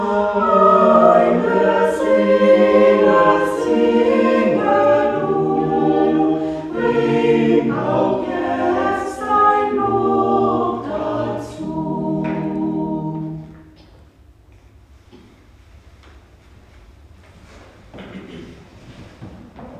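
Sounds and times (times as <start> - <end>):
choir singing: 0.0 - 13.8.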